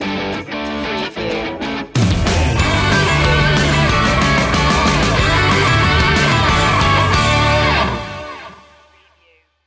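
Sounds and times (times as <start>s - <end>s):
Christmas remix sting: 0.4s - 9.2s.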